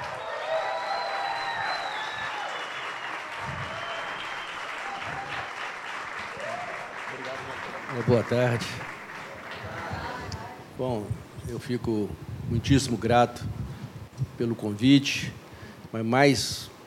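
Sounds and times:
audience applause: 0:00.0 - 0:10.6
speech: 0:08.0 - 0:08.9, 0:10.8 - 0:13.6, 0:14.4 - 0:16.7.

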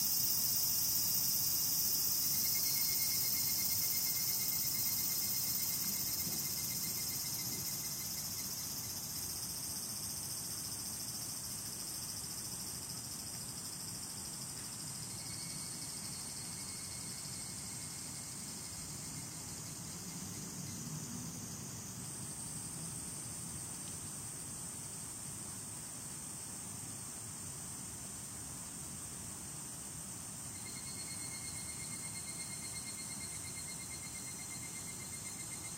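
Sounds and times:
higurashi cicadas chorus: 0:00.0 - 0:35.7.

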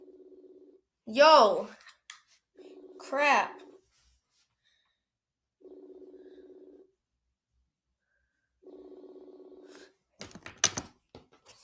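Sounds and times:
speech: 0:01.1 - 0:01.8, 0:03.0 - 0:03.6
phone outgoing call ringback tone: 0:02.6 - 0:03.8, 0:05.6 - 0:07.0, 0:08.6 - 0:09.9.

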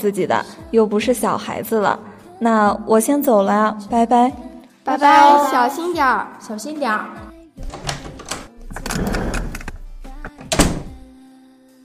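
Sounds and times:
speech: 0:00.0 - 0:07.2
door closing: 0:07.6 - 0:11.0.

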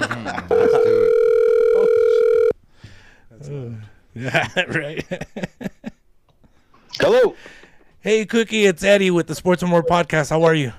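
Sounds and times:
laughter: 0:00.0 - 0:01.1, 0:04.2 - 0:06.0
outgoing phone call ringback tone: 0:00.5 - 0:02.6
speech: 0:04.2 - 0:05.6, 0:08.0 - 0:10.7.

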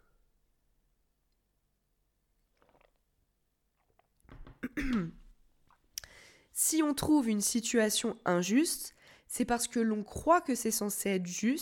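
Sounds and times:
person sipping water with wet gulps and mouth clicks: 0:02.6 - 0:03.1
speech: 0:04.7 - 0:05.2, 0:06.6 - 0:11.6.

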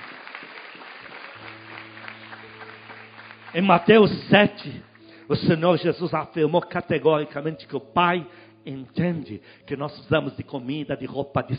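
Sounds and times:
audience applauding: 0:00.0 - 0:05.1
speech: 0:03.5 - 0:11.5.

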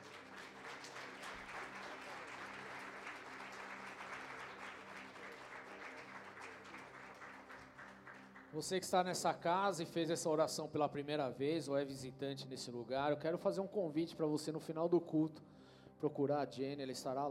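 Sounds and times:
audience applauding: 0:00.0 - 0:09.1
speech: 0:08.5 - 0:17.2.

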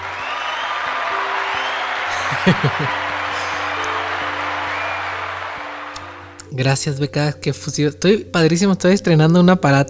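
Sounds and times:
applause sound effect: 0:00.0 - 0:06.4
laughter: 0:00.9 - 0:04.5
speech: 0:02.4 - 0:03.1, 0:06.6 - 0:09.8.

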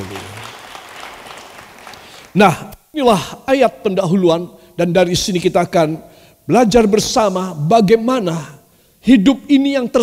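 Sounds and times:
audience applause: 0:00.0 - 0:02.4
speech: 0:02.3 - 0:10.0.

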